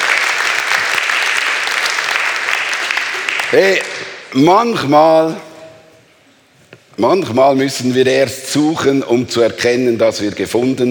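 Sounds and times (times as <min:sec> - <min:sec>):
audience applause: 0:00.0 - 0:04.2
speech: 0:03.5 - 0:05.5, 0:07.0 - 0:10.8.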